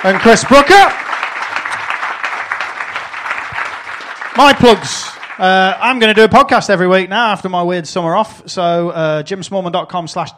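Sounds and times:
speech: 0.0s - 1.0s, 4.4s - 10.3s
audience applause: 0.0s - 6.2s.

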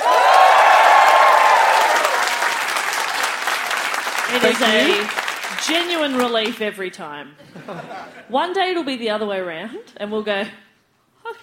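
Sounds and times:
crowd applauding: 0.0s - 6.7s
laughter: 4.3s - 5.1s, 7.4s - 8.3s
speech: 4.4s - 10.6s, 11.2s - 11.4s.

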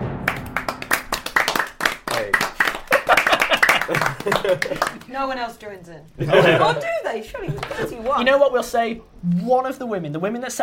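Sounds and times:
applause in empty hall: 0.2s - 5.2s
laughter: 2.6s - 5.2s, 6.2s - 8.2s
speech: 3.9s - 10.6s.

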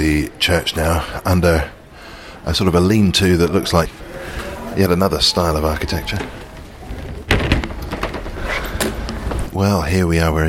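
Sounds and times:
speech: 0.0s - 1.8s, 2.4s - 6.4s, 9.6s - 10.4s
heavy wooden church side door opening and shutting: 5.7s - 9.6s.

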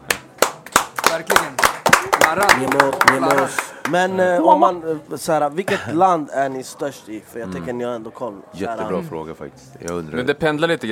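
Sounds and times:
applause: 0.0s - 4.0s
speech: 1.1s - 10.9s.

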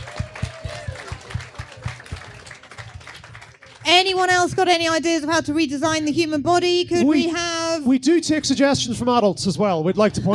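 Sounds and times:
audience applause: 0.0s - 4.0s
speech: 3.9s - 10.3s.

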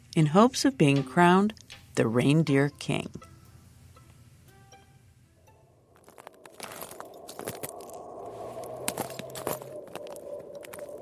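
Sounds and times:
speech: 0.2s - 3.3s
footsteps on frozen ice of Lake Inari: 5.9s - 11.0s.

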